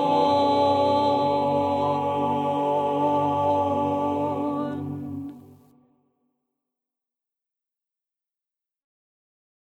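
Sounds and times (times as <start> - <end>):
mezzo-soprano singing: 0.0 - 5.6.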